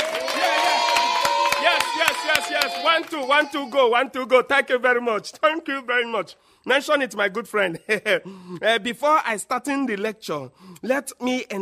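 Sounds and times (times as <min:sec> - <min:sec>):
audience clapping: 0:00.0 - 0:04.0
crowd cheering: 0:00.0 - 0:04.1
speech: 0:02.5 - 0:11.6.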